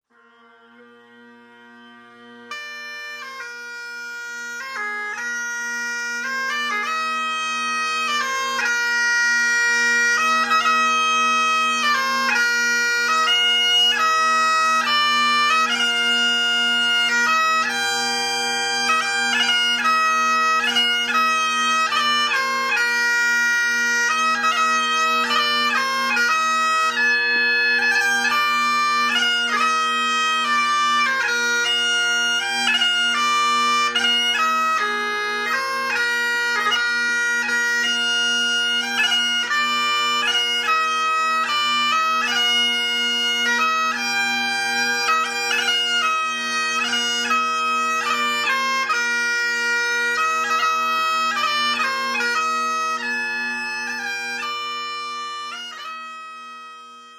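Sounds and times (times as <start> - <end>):
bagpipes: 0.0 - 57.1.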